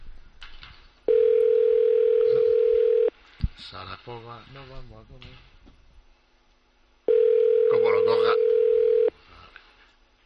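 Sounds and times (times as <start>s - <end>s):
ringback tone of an outgoing phone call: 1.1s - 3.1s, 7.1s - 9.1s
speech: 3.7s - 5.8s.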